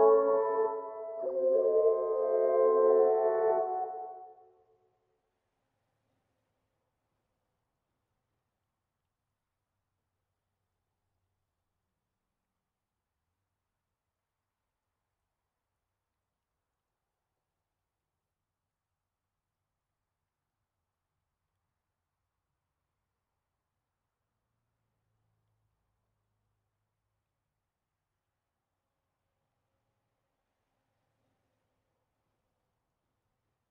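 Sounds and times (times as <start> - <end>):
C# minor pad loop stems: 0.0 - 4.0.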